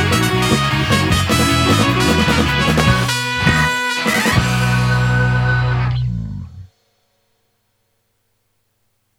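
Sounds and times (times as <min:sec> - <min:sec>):
fanfare: 0:00.0 - 0:06.0.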